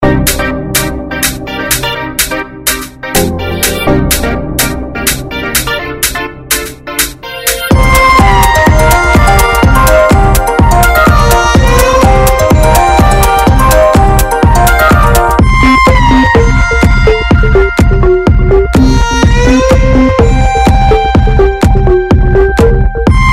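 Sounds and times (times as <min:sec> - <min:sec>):
melodic beat: 0:00.0 - 0:23.3.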